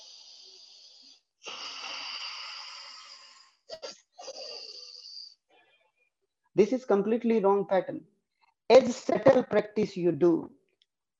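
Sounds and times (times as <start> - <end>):
forceful pranayama breathing: 0.0 - 5.4
speech: 6.6 - 8.2, 8.8 - 10.6.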